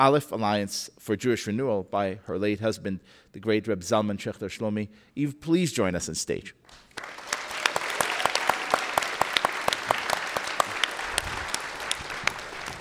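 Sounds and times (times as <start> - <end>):
speech: 0.0 - 7.2
audience applause: 6.7 - 12.7.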